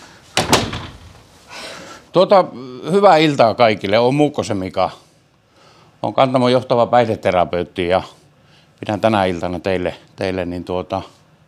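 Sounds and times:
door shutting: 0.3s - 1.3s
speech: 2.1s - 5.0s, 6.0s - 8.2s, 8.8s - 11.2s.

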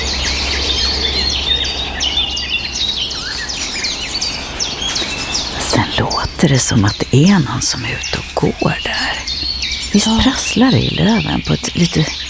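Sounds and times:
blackcap contact call while foraging: 0.1s - 6.2s
speech: 6.4s - 9.2s, 9.9s - 12.2s.

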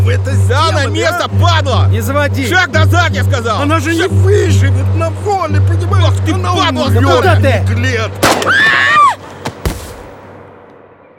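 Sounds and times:
speech: 0.1s - 9.1s
gunshots in a film scene: 8.2s - 8.7s, 9.4s - 10.4s.

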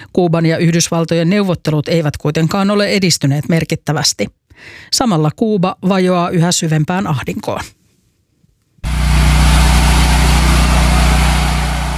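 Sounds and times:
speech: 0.2s - 7.8s
electric generator humming in Havana, Cuba: 8.8s - 11.9s.

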